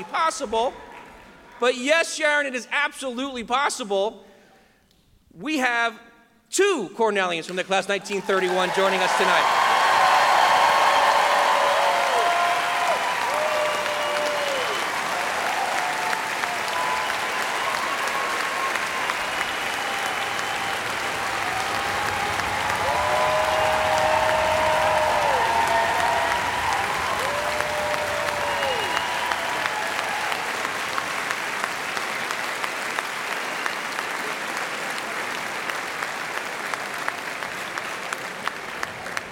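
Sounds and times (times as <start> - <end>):
speech: 0.0 - 0.9, 1.6 - 4.3, 5.3 - 9.7
audience applause: 8.1 - 39.3.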